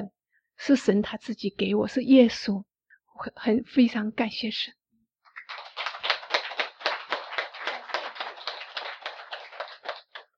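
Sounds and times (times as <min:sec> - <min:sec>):
speech: 0:00.0 - 0:04.8
crowd applauding: 0:05.3 - 0:10.3.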